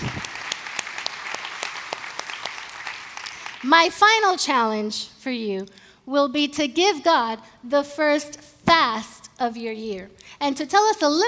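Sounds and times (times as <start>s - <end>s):
crowd clapping: 0.0s - 3.7s
speech: 3.6s - 11.2s.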